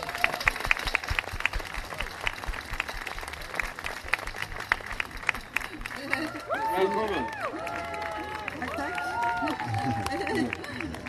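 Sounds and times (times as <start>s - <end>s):
studio audience applauding as a guest enters a Swedish TV talk show set: 0.0s - 11.0s
studio audience cheering: 0.0s - 11.0s
laughter: 5.2s - 11.0s.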